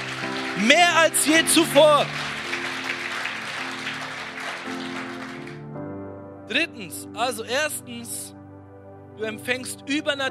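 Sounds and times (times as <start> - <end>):
audience applause: 0.0 - 5.6
speech: 0.6 - 2.2, 6.5 - 8.4, 9.2 - 10.2.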